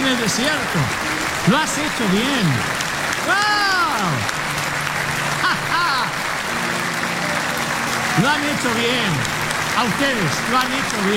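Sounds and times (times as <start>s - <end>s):
church congregation applause: 0.0s - 11.1s
speech: 0.2s - 4.4s, 8.2s - 11.1s
laughter: 0.4s - 11.1s
person shouting: 3.2s - 4.3s.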